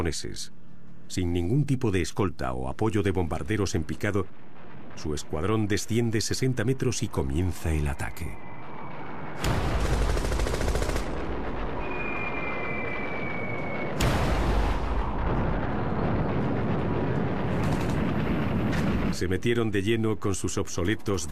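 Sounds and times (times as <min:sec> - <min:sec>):
speech: 0:00.0 - 0:04.4, 0:05.0 - 0:08.5, 0:09.4 - 0:09.8, 0:19.2 - 0:21.3
anti-aircraft fire: 0:03.4 - 0:19.7.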